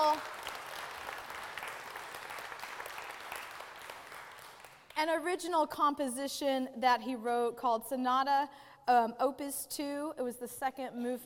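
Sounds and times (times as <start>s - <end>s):
worship service congregation applause for a performer after his original sonata: 0.0s - 5.0s
speech: 5.0s - 11.2s.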